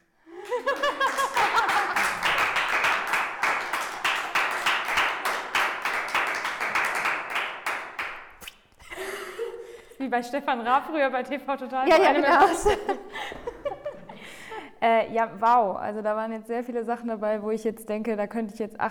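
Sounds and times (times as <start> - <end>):
laughter: 0.3 - 4.0, 11.9 - 14.5
audience clapping: 0.3 - 8.4
speech: 10.1 - 13.3, 14.8 - 18.9.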